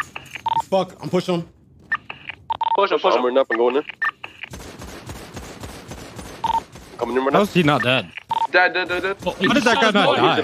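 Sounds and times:
steady noise: 0:00.0 - 0:10.4
speech: 0:00.7 - 0:01.6, 0:02.8 - 0:04.0, 0:07.0 - 0:10.4
gunfire in the video game GTA: 0:04.4 - 0:10.4.

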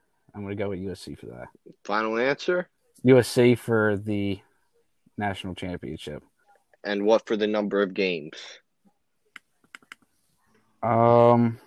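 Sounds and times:
speech: 0:00.4 - 0:04.5, 0:05.2 - 0:08.6, 0:10.8 - 0:11.6
computer keyboard clicking: 0:09.6 - 0:10.0.

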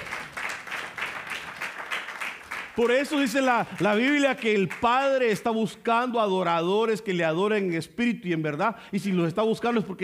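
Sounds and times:
rhythmic audience applause: 0:00.0 - 0:05.2
speech: 0:02.8 - 0:10.0.

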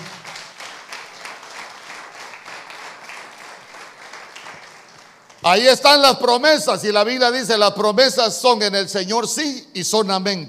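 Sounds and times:
large crowd clapping in sustained applause: 0:00.0 - 0:05.5
speech: 0:05.4 - 0:10.4.

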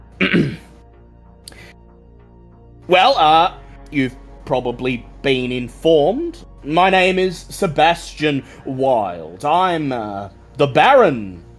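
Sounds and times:
man clearing throat: 0:00.2 - 0:00.7
speech: 0:00.4 - 0:00.7, 0:02.9 - 0:11.5.

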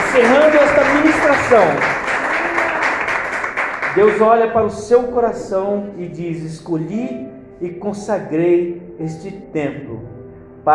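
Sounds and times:
audience applauding: 0:00.0 - 0:04.6
speech: 0:01.5 - 0:01.9, 0:04.0 - 0:10.7.

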